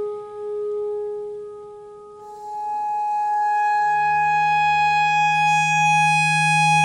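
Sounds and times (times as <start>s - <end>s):
clarinet notes in E: 2.2s - 6.8s.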